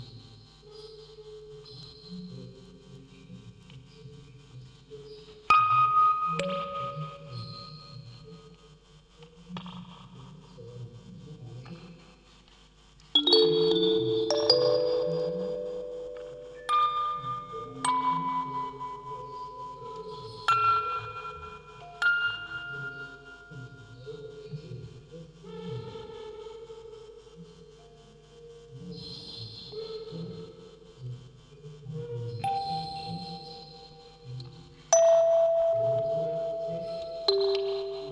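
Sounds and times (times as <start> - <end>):
field recording ambience: 0.0 - 38.0
vocoder voice: 1.7 - 8.6, 9.2 - 12.0, 13.2 - 38.0
music box quartet: 13.2 - 23.9, 34.9 - 38.0.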